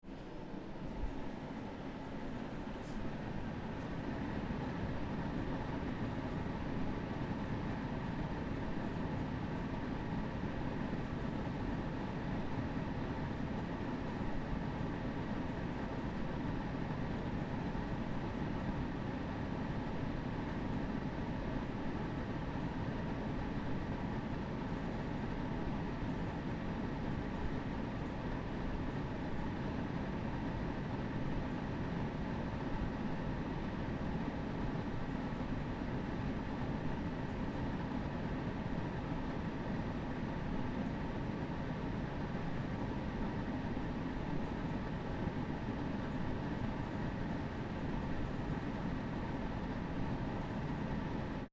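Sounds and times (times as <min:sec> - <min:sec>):
air conditioner internal sound: 0:00.0 - 0:51.5.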